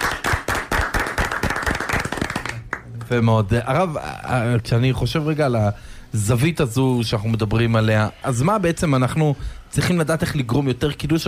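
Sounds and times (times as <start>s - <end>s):
few people hand clapping: 0.0s - 3.0s
speech: 3.1s - 11.2s.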